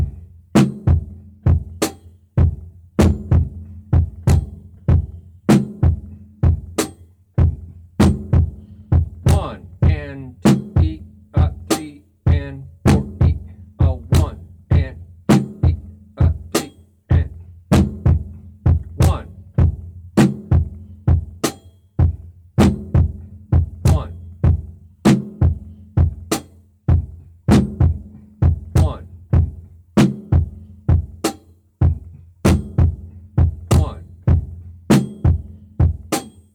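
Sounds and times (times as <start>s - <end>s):
drum beat: 0.0s - 36.5s
person vocalizing drum syllables: 9.1s - 17.5s, 18.8s - 19.4s, 23.8s - 24.3s, 28.6s - 29.6s, 33.5s - 34.5s.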